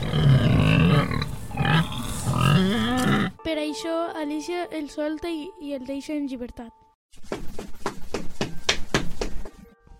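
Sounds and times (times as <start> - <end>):
piglet grunting: 0.0 - 3.4
speech: 3.5 - 7.2.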